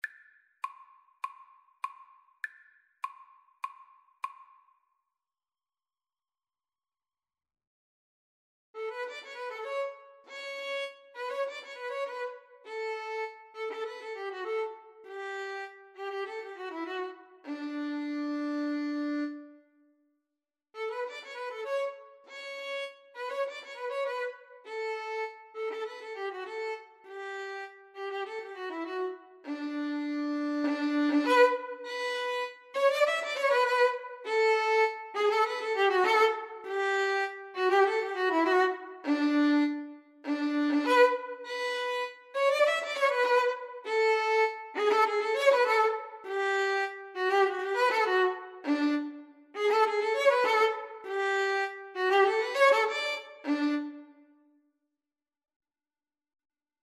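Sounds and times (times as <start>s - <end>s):
cello: 8.8s - 19.7s, 20.8s - 54.3s
violin: 8.8s - 19.7s, 20.8s - 54.4s.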